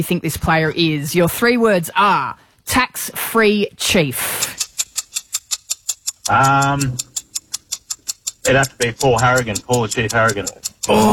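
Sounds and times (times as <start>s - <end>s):
speech: 0.0s - 4.6s, 6.3s - 7.1s, 8.4s - 11.1s
quiz timer ticking: 3.8s - 11.1s
person making drawn-out sound: 10.8s - 11.1s.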